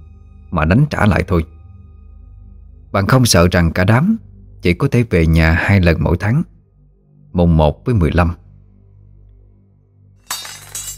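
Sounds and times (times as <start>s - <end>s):
speech: 0.5s - 1.6s, 2.9s - 6.5s, 7.4s - 8.4s
knife falling and clattering onto the ground: 10.3s - 10.9s.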